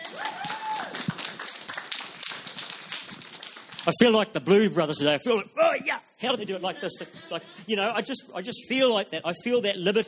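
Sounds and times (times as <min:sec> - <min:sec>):
audience clapping: 0:00.0 - 0:04.3
speech: 0:03.9 - 0:10.0
laughter: 0:06.4 - 0:08.2.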